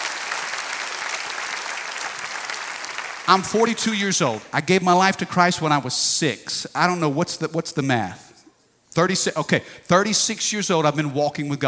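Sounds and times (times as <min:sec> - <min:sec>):
audience clapping hands: 0:00.0 - 0:04.5
speech: 0:03.3 - 0:08.3, 0:09.0 - 0:11.6.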